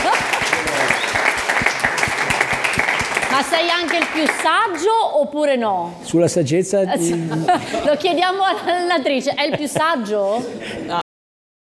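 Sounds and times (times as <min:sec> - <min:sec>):
laughter: 0:00.0 - 0:02.9, 0:06.9 - 0:11.0
audience applause: 0:00.0 - 0:04.9
speech: 0:03.4 - 0:11.0.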